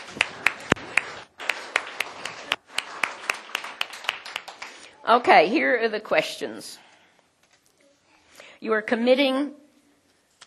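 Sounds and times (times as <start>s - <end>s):
audience clapping: 0.0s - 5.0s
speech: 5.1s - 6.9s, 8.6s - 9.6s.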